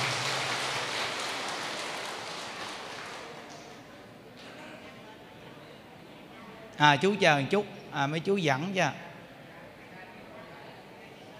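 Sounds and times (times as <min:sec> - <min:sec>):
audience applause: 0:00.0 - 0:03.8
speech: 0:06.8 - 0:09.0.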